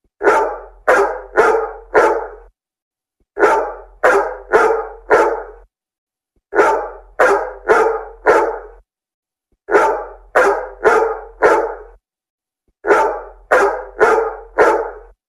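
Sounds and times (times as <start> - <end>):
dog barking loudly: 0.2 - 2.5, 3.4 - 5.6, 6.5 - 8.8, 9.7 - 12.0, 12.8 - 15.2.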